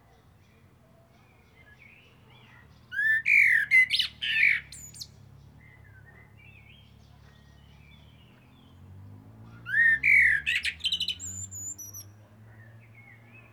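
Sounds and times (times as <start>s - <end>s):
Eurasian blackbird Turdus merula song: 0.0s - 13.5s.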